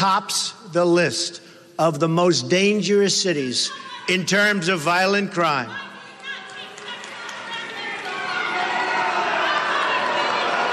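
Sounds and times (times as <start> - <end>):
speech: 0.0 - 5.9
crowd of protesters yelling: 5.6 - 10.7.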